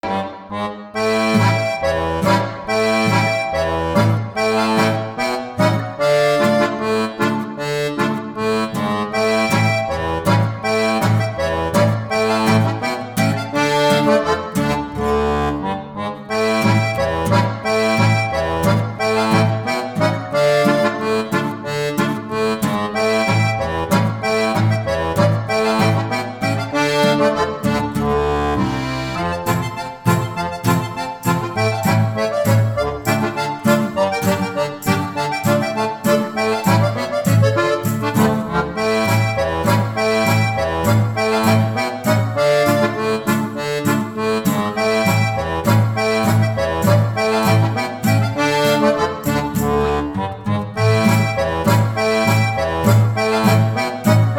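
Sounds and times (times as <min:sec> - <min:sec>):
Russian instrumental polka: 0:00.0 - 0:54.3.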